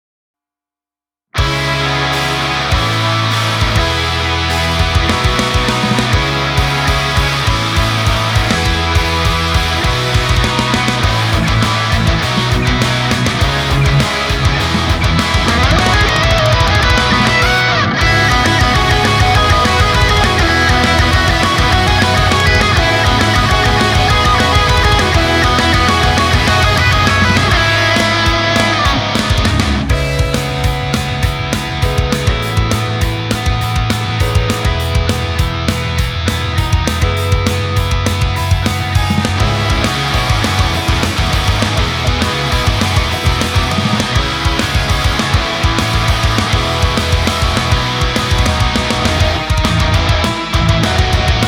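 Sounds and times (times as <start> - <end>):
instrumental music: 1.4 - 51.4.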